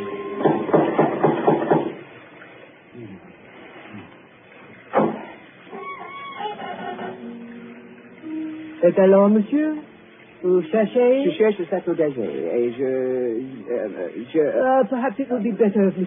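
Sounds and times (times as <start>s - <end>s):
door knocker knocking: 0.4s - 2.0s
speech: 8.9s - 9.8s, 10.4s - 16.0s.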